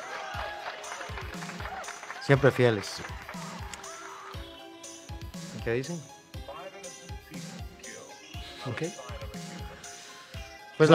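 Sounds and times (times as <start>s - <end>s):
audience clapping: 0.0s - 4.4s
speech: 2.3s - 3.2s, 5.6s - 6.1s, 8.6s - 9.1s.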